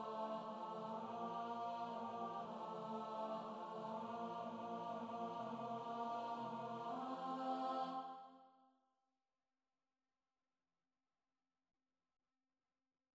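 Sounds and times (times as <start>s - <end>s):
alto study: 0.0s - 8.2s.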